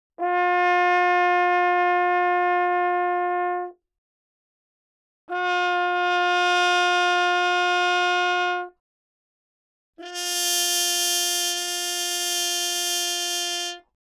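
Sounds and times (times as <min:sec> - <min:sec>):
horn: 0:00.2 - 0:03.8, 0:05.3 - 0:08.8, 0:10.0 - 0:14.0.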